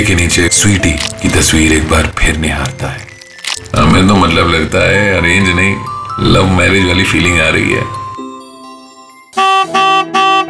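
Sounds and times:
speech: 0.0 - 3.1, 3.7 - 8.0, 9.4 - 10.4
vehicle horn honking: 9.4 - 10.4.

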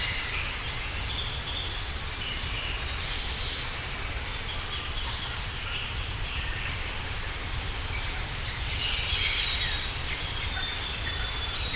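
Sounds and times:
tropical birds: 0.0 - 11.7.

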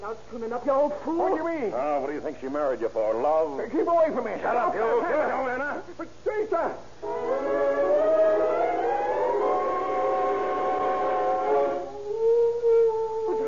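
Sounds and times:
speech: 0.0 - 7.8
dog howling: 7.2 - 13.4.

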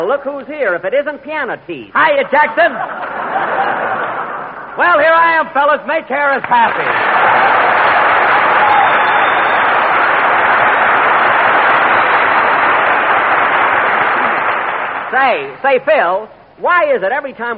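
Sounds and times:
speech: 0.0 - 3.9, 4.8 - 7.6, 15.1 - 17.5
laughter: 2.6 - 4.8, 6.9 - 8.0
audience applause: 6.6 - 15.2.

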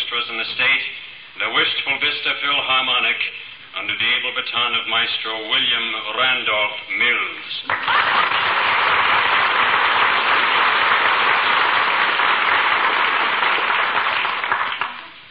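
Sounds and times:
speech: 0.1 - 8.5
audience applause for orchestra: 7.7 - 15.2.

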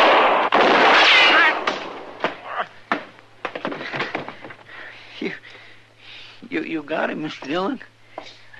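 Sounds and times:
gunshots in a staged Old West gunfight drama: 0.0 - 2.4
speech: 6.5 - 8.5.

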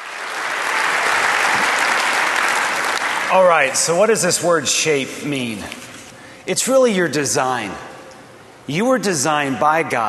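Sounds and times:
audience applauding to welcome a pastor: 0.0 - 3.8
speech: 3.3 - 5.9, 6.5 - 7.9, 8.7 - 10.0.

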